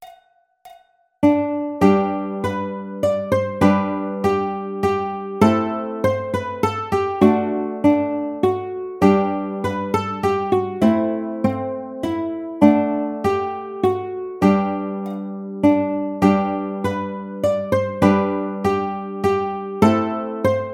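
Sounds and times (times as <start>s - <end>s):
ukulele: 1.2s - 20.7s.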